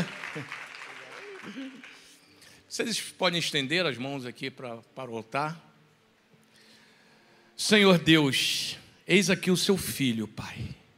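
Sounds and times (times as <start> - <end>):
audience applauding: 0.0 - 2.4
speech: 0.4 - 0.6, 1.4 - 2.0, 2.7 - 5.7, 7.6 - 10.8.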